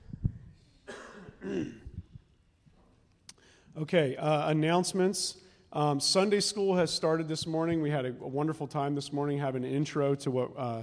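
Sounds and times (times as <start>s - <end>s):
person clearing throat during morning announcements: 0.8s - 2.1s
speech: 1.4s - 1.8s, 3.8s - 10.8s
breaths: 3.3s - 3.8s, 5.4s - 5.8s.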